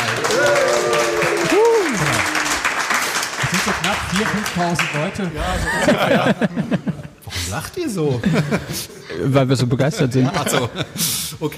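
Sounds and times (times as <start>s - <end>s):
live audience cheering and whooping: 0.0s - 2.9s
live audience applauding: 0.0s - 6.1s
laughter: 3.4s - 11.3s
speech: 3.6s - 11.5s.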